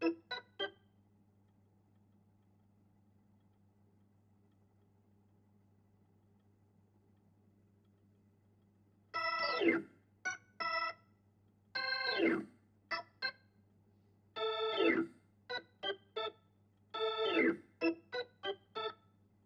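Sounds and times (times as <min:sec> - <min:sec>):
Hammond organ: 0:00.0 - 0:00.8, 0:09.2 - 0:11.0, 0:11.8 - 0:13.4, 0:14.4 - 0:19.0.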